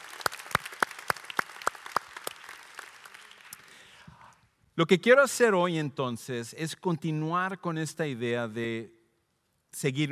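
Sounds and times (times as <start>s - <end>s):
loud applause: 0.0s - 4.0s
speech: 4.8s - 9.0s, 9.7s - 10.0s.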